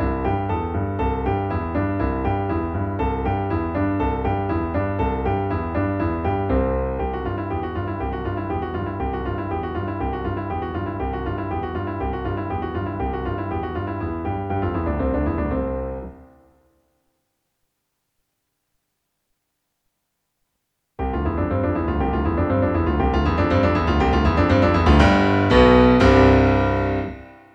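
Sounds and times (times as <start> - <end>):
piano base: 0.0 - 16.8, 21.0 - 27.5.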